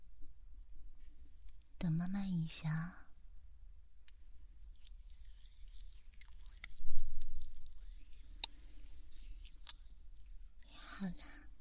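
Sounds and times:
speech: 2.1 - 3.0
lotion being massaged into an ear: 4.5 - 11.4.

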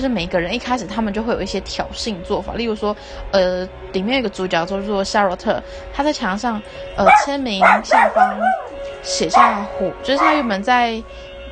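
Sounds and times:
speech: 0.0 - 11.3
dog barking: 7.0 - 10.7.

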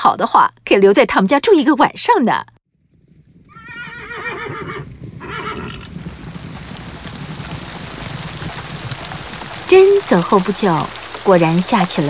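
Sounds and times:
speech: 0.1 - 2.6, 9.7 - 12.0
horse hooves: 2.9 - 11.3
horse neighing: 3.5 - 5.9.

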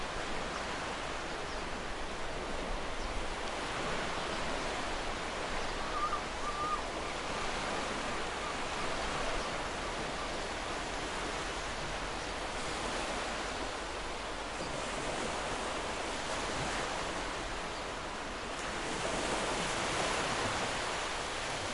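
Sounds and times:
ocean waves: 0.0 - 21.7.

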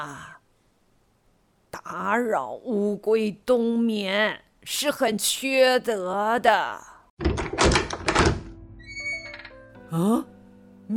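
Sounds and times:
speech: 0.0 - 0.4, 1.8 - 7.3, 9.9 - 10.3
door opening with heavy rattling clunks: 7.2 - 9.6.

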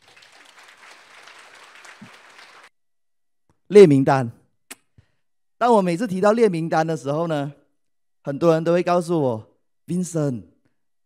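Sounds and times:
audience applause: 0.0 - 2.7
speech: 3.7 - 4.4, 5.6 - 7.6, 8.2 - 10.5.

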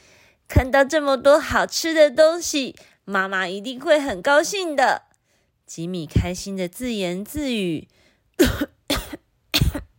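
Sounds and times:
speech: 0.6 - 5.1, 5.7 - 8.7
soft cough: 8.4 - 9.9.

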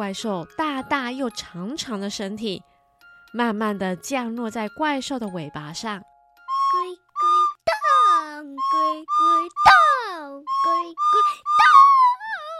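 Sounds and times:
speech: 0.0 - 2.7, 3.3 - 6.1, 8.9 - 12.0
flute playing a tune: 6.4 - 12.5.

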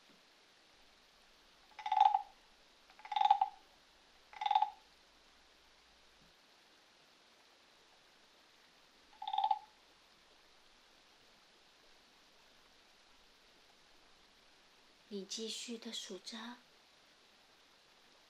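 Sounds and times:
faint hiss: 0.0 - 18.2
frogs croaking: 1.6 - 3.7, 4.3 - 4.9, 9.1 - 9.9
speech: 15.1 - 16.7.

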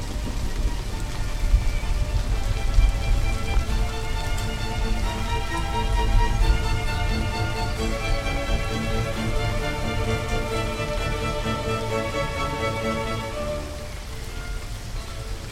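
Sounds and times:
heavy rainstorm: 0.0 - 15.4.

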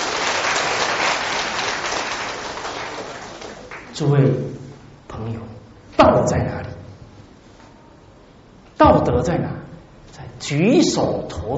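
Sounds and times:
crowd applause: 0.0 - 3.9
speech: 4.0 - 4.5, 6.1 - 6.6, 9.1 - 9.6, 10.4 - 11.5.

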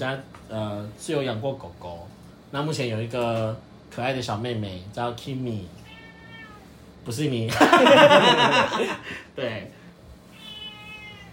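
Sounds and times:
speech: 0.0 - 5.8, 7.0 - 9.8
cat meowing: 5.8 - 6.7, 10.3 - 11.3
laughter: 7.5 - 9.2.

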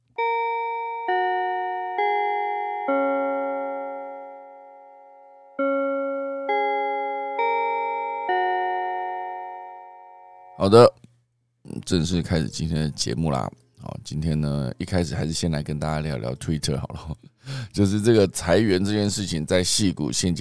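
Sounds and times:
bell chime melody: 0.2 - 10.6
speech: 10.6 - 11.0, 11.9 - 20.4.

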